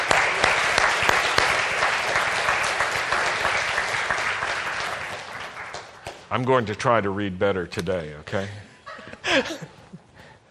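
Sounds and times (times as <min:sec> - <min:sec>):
audience clapping to welcome a speaker: 0:00.0 - 0:06.8
speech: 0:06.3 - 0:08.7, 0:09.3 - 0:09.7.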